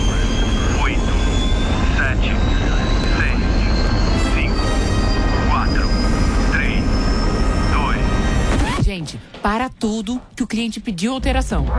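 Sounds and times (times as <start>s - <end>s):
aircraft takeoff launch sound effect: 0.0s - 8.8s
speech: 9.8s - 11.7s.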